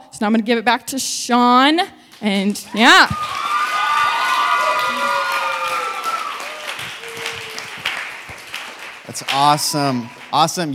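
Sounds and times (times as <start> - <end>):
speech: 0.2 - 3.5, 9.2 - 10.7
audience applause: 2.7 - 10.7.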